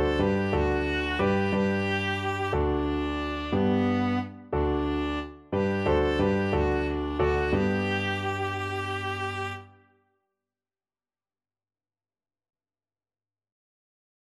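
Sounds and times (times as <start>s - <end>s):
violin: 0.0s - 9.9s.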